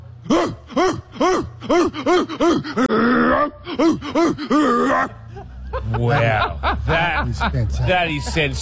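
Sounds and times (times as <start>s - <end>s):
person imitating a dog barking: 0.2s - 5.3s
speech: 0.3s - 8.6s
laughter: 3.7s - 8.6s.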